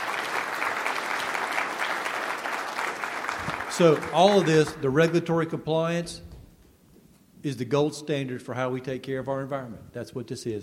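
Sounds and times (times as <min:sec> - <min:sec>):
audience applauding a presentation: 0:00.0 - 0:04.9
speech: 0:03.8 - 0:06.3, 0:07.4 - 0:10.6.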